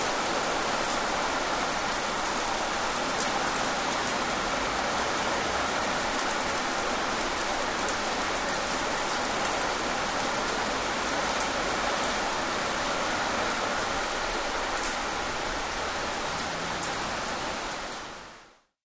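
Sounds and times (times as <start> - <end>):
pleasant rain: 0.0 - 18.8.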